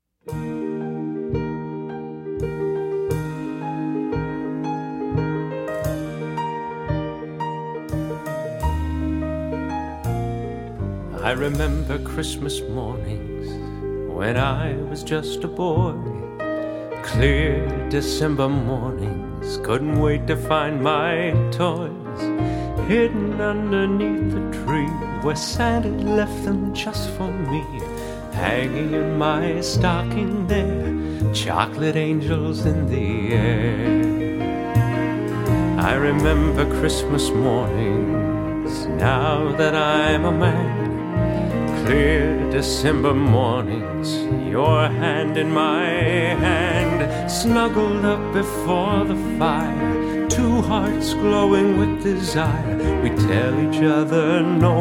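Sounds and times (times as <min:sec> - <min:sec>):
Christmas music without saxophone: 0:00.3 - 0:54.7.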